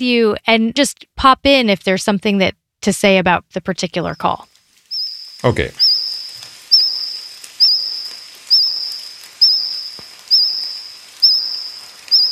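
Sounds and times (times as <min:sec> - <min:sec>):
speech: 0:00.0 - 0:04.5, 0:05.4 - 0:05.9
faint hiss: 0:04.2 - 0:12.3
cricket singing close: 0:04.9 - 0:12.3.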